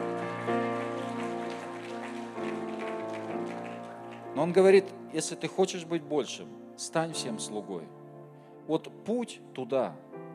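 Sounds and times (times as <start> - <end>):
crowd clapping: 0.0 - 4.7
sustained keyboard chords: 0.0 - 10.3
speech: 4.4 - 8.0, 8.7 - 10.1.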